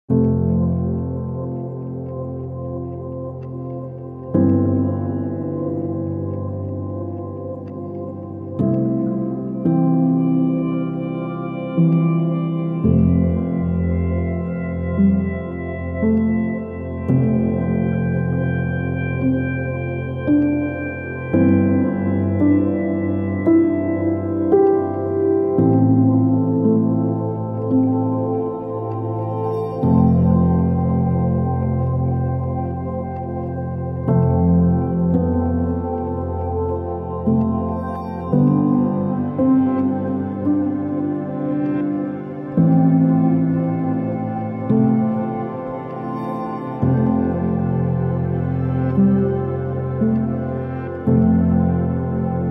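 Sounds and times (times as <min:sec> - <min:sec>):
emotional atmospheric music: 0:00.1 - 0:52.4.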